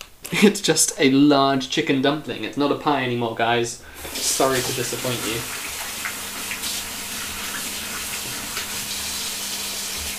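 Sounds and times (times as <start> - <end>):
speech: 0.3 - 5.6
water running from a hot tap: 2.3 - 10.1.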